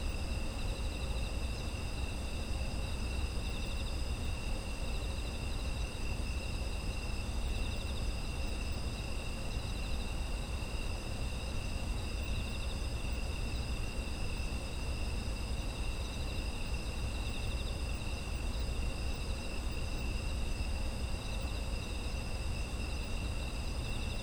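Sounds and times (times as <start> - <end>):
insect chorus trilling: 0.0 - 24.2
low background hum: 0.0 - 24.2.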